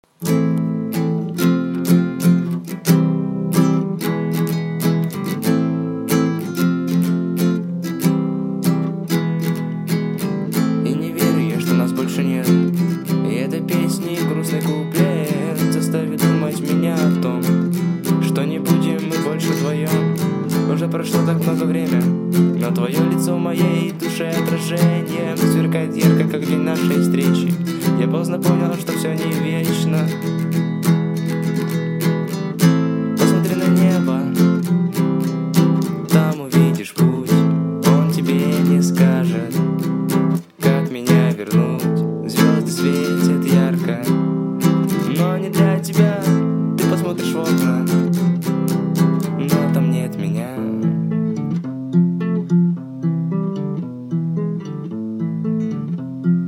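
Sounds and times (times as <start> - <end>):
acoustic music: 0.0 - 56.4.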